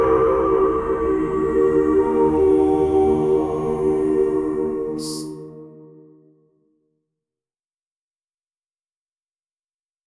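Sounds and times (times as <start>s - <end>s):
religious chant sung on a vowel: 0.0s - 6.1s.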